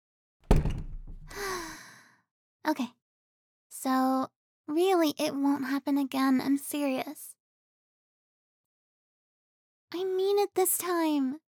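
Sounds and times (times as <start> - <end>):
door closing in a big office: 0.5 - 1.7
speech: 2.7 - 3.0, 3.8 - 7.4, 9.9 - 11.4.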